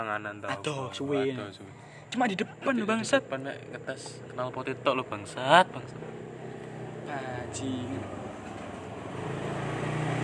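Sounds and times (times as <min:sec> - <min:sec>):
speech: 0:00.0 - 0:06.2, 0:07.1 - 0:08.3, 0:09.2 - 0:09.6
motorbike passing: 0:02.7 - 0:10.2.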